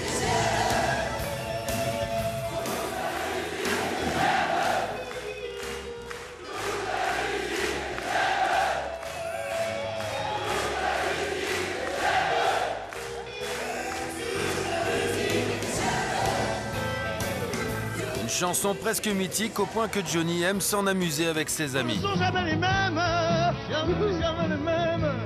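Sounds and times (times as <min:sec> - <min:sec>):
concert audience singing along with the singer at the Olympia: 0:00.0 - 0:01.4, 0:02.2 - 0:18.2
speech: 0:18.4 - 0:25.1.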